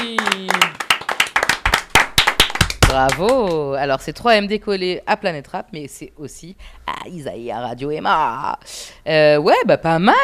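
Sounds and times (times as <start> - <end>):
small audience clapping in a rap radio studio: 0.0 - 3.6
speech: 2.9 - 10.2.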